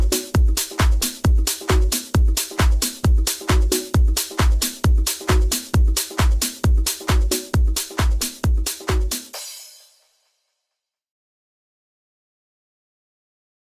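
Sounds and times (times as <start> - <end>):
tech house club mix: 0.0 - 9.9.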